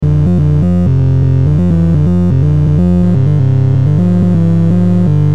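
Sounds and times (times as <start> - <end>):
ringtone: 0.2 - 5.2.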